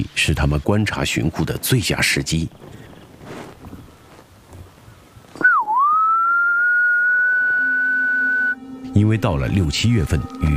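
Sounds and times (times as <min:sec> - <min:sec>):
speech: 0:00.0 - 0:02.9, 0:09.0 - 0:10.5
quiet rustling: 0:00.0 - 0:05.5
gibbon-like whistling call: 0:05.4 - 0:08.6.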